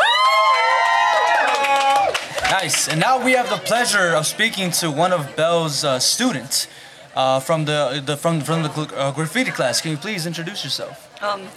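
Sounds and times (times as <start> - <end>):
crowd cheering: 0.0 - 11.5
clapping: 0.5 - 3.0
speech: 2.5 - 11.5.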